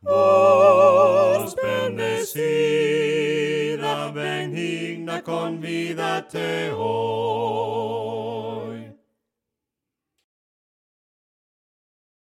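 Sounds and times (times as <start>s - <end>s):
voices singing hymns a cappella: 0.0s - 9.0s.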